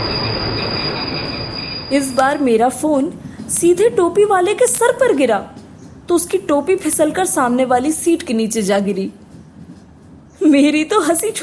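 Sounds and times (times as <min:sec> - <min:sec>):
train jolting on rails: 0:00.0 - 0:04.2
speech: 0:01.9 - 0:09.2, 0:10.4 - 0:11.4.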